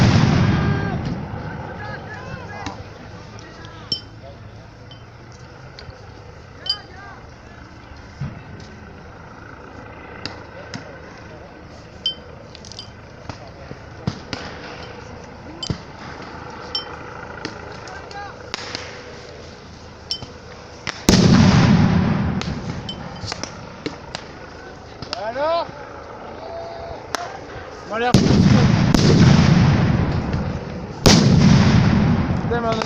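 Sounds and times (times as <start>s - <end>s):
grenade cracks and bangs: 0.0s - 1.4s, 12.1s - 19.3s, 20.1s - 25.4s, 28.0s - 32.8s
loud grenade blasts: 0.0s - 3.1s, 13.2s - 19.3s, 20.2s - 25.1s, 28.0s - 32.8s
crowd noise and voices in clashes with riot police: 0.1s - 32.8s
people shouting: 0.5s - 3.0s, 26.3s - 27.5s.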